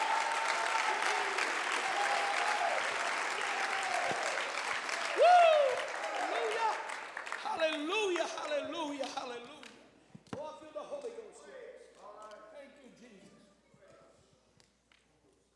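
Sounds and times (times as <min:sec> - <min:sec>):
audience clapping: 0:00.0 - 0:09.8.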